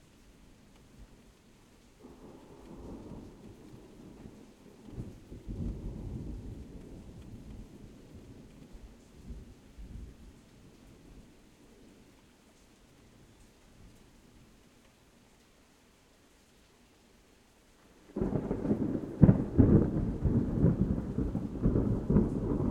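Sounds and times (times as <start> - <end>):
rain in a suburban thunderstorm: 0.0 - 22.7
distant thunder in a suburban thunderstorm: 2.0 - 8.5, 18.1 - 22.7.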